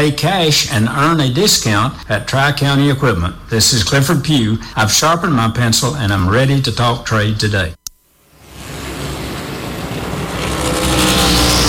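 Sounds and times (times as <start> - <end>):
speech: 0.0 - 7.8
NASCAR stock cars racing on short track at Richmond Raceway: 8.4 - 11.6.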